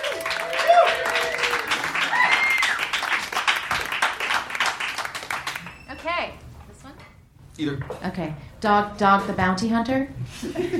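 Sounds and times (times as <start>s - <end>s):
cheers and whistles: 0.0s - 2.9s
audience applause: 0.0s - 5.8s
speech: 7.6s - 10.7s.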